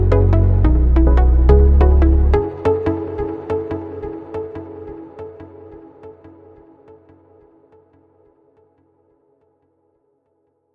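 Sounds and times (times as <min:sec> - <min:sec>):
instrumental remix: 0:00.0 - 0:05.7.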